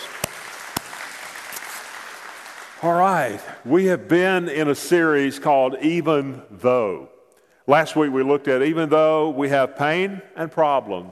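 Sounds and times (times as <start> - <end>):
audience praise clap in a church service: 0.0 - 3.6
speech: 2.8 - 7.1, 7.7 - 11.0.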